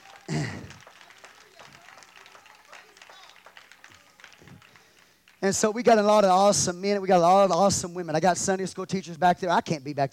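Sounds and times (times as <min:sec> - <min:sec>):
shout: 0:00.0 - 0:04.6
audience clapping hands in praise: 0:00.0 - 0:07.6
speech: 0:05.4 - 0:10.1.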